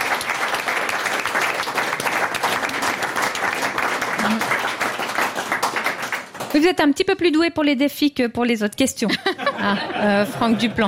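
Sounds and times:
audience applause: 0:00.0 - 0:06.6
laughter: 0:04.2 - 0:04.6, 0:09.0 - 0:10.8
speech: 0:06.6 - 0:10.8.

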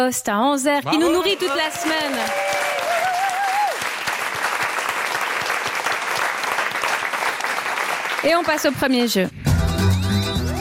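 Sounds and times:
speech: 0:00.0 - 0:02.8, 0:08.2 - 0:09.5
audience applause: 0:00.9 - 0:09.1.

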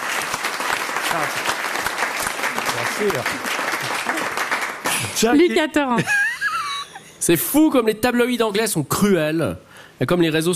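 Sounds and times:
audience applause: 0:00.0 - 0:05.2
speech: 0:01.1 - 0:01.6, 0:02.8 - 0:04.4, 0:05.2 - 0:06.2, 0:07.2 - 0:10.5.

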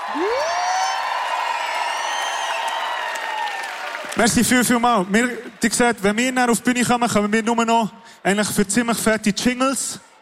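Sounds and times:
faint cheers: 0:00.0 - 0:04.2
crowd applauding: 0:00.0 - 0:06.6
speech: 0:00.1 - 0:00.4, 0:04.2 - 0:10.1.

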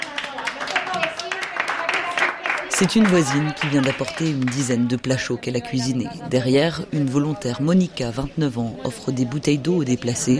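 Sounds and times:
village residents applauding a neighbour woman: 0:00.0 - 0:05.0
speech: 0:02.8 - 0:10.3.

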